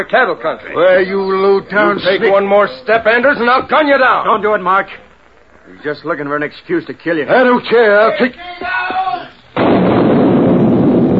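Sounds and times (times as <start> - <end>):
speech: 0.0 - 5.0, 5.7 - 9.0
dam being blown up, explosion: 9.6 - 11.1.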